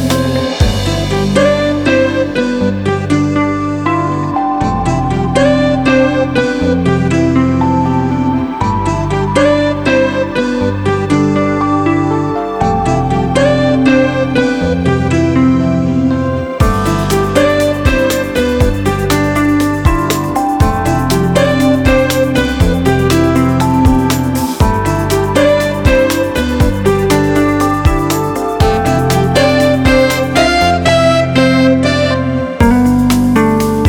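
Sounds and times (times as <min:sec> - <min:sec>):
old school smooth jazz: 0:00.0 - 0:33.8.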